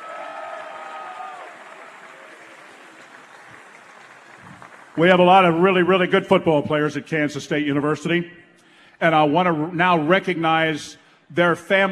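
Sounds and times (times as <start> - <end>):
audience applause: 0.0 - 5.2
speech: 5.0 - 8.4, 9.0 - 11.8.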